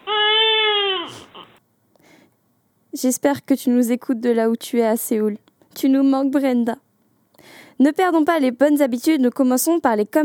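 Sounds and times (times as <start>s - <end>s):
comic crying sound effect: 0.0s - 1.6s
speech: 3.0s - 6.8s, 7.4s - 10.2s.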